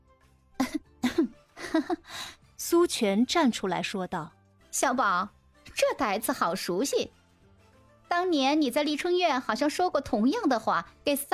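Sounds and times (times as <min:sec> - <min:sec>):
person coughing: 0:00.6 - 0:02.0
speech: 0:01.8 - 0:07.2, 0:08.1 - 0:11.3.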